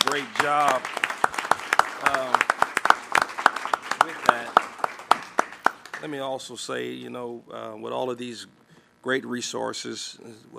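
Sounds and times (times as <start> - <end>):
scattered audience hand clapping at a meeting: 0.0 - 6.2
speech: 0.2 - 1.1, 6.0 - 10.5.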